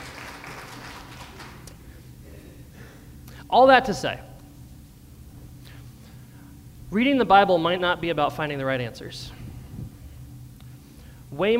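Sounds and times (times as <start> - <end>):
audience applause: 0.0 - 1.8
speech: 3.5 - 4.3, 6.9 - 9.4, 11.4 - 11.5.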